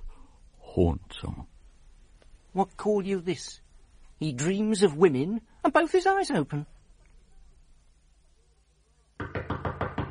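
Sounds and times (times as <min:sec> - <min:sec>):
speech: 0:00.8 - 0:01.5, 0:02.6 - 0:03.6, 0:04.2 - 0:06.8
knocking: 0:09.2 - 0:10.0.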